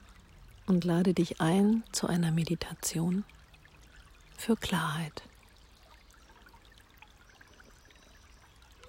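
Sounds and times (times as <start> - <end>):
small forest stream babbling: 0.0 - 8.8
speech: 0.7 - 3.4, 4.4 - 5.3.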